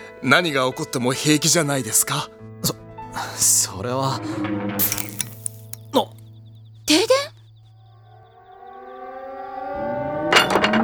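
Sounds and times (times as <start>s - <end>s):
speech: 0.2s - 5.3s, 5.9s - 6.2s
air raid siren: 7.8s - 10.8s.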